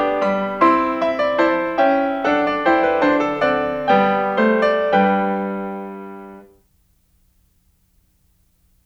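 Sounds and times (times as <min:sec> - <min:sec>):
keyboard piece for one clavier: 0:00.0 - 0:06.5.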